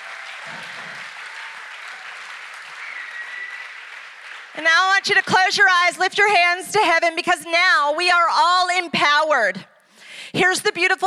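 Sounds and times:
audience applause: 0.0 - 5.3
high whistle-like cry: 2.7 - 3.8
speech: 4.6 - 9.7, 10.4 - 11.0.

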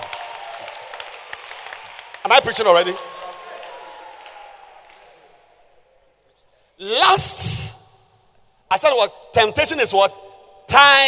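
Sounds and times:
audience clapping hands: 0.0 - 5.2
speech: 2.3 - 3.2, 6.8 - 7.8, 8.7 - 11.0.

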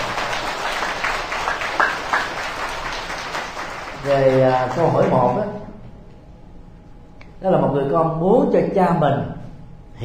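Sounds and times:
big round of applause: 0.0 - 5.5
speech: 4.0 - 5.7, 7.4 - 9.4.

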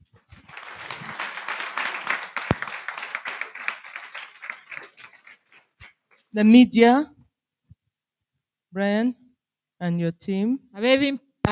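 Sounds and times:
audience clapping hands: 0.0 - 6.1
speech: 6.3 - 7.1, 8.7 - 9.2, 9.8 - 11.5.

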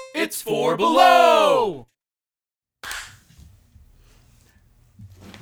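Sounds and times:
speech: 0.2 - 1.9
single hand clap: 2.8 - 3.2.

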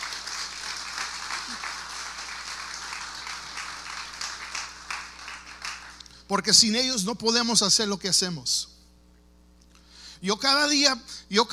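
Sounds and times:
audience applause: 0.0 - 6.0
speech: 6.3 - 8.7, 10.2 - 11.5.

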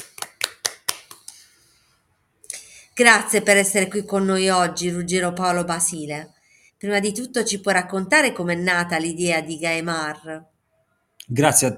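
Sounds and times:
applause: 0.0 - 1.4
speech: 3.0 - 10.5, 11.3 - 11.7.

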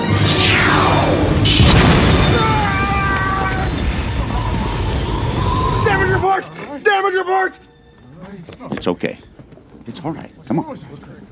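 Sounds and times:
laser blast sweeping descending whoosh from the film Independence Day: 0.1 - 5.9
heavy booming explosion with rumbling roar from the film Independence Day: 0.1 - 6.2
speech: 8.9 - 11.3.

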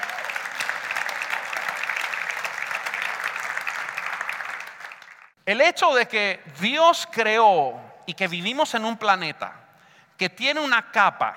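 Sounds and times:
crowd applauding loudly: 0.0 - 5.4
speech: 5.5 - 9.6, 10.2 - 11.3.

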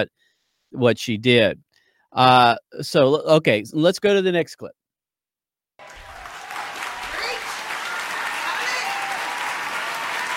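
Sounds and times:
speech: 0.0 - 4.8
large audience applause: 5.8 - 10.3.

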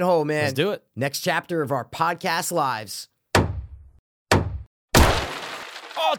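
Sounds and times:
speech: 0.0 - 3.1
hammer knocking a hole in wall: 3.4 - 4.7.

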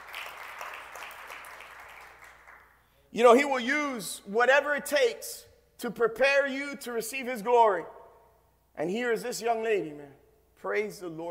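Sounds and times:
crowd clapping: 0.0 - 2.8
speech: 3.1 - 8.0, 8.8 - 11.2.

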